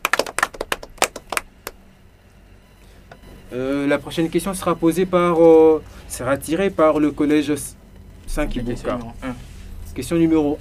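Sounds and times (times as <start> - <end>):
scattered hand claps from a small group: 0.0 - 1.8
speech: 3.5 - 10.5.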